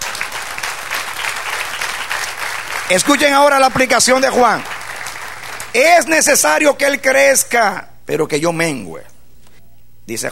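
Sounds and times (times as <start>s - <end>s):
audience applause: 0.0s - 6.2s
speech: 2.9s - 4.8s, 5.7s - 9.1s, 10.1s - 10.3s.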